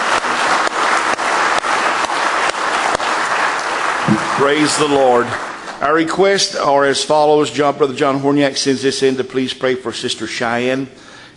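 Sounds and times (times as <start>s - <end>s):
audience clapping hands: 0.0s - 6.4s
speech: 4.4s - 11.3s.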